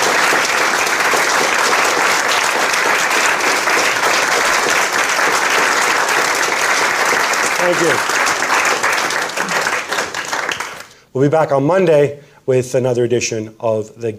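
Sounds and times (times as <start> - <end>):
audience applause: 0.0 - 11.0
speech: 7.6 - 8.2, 11.2 - 14.1.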